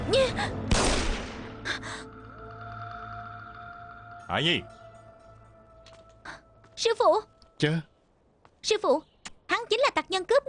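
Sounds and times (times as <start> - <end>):
speech: 0.1 - 0.6, 4.3 - 4.8, 6.8 - 7.9, 8.6 - 10.4
gunfire after an order to shoot: 0.7 - 1.6.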